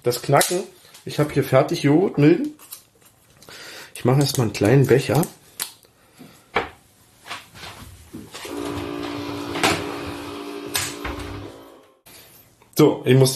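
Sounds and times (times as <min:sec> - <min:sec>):
speech: 0:00.0 - 0:02.7, 0:04.0 - 0:05.4, 0:12.8 - 0:13.3
coffee machine running a rinse cycle: 0:08.5 - 0:11.8.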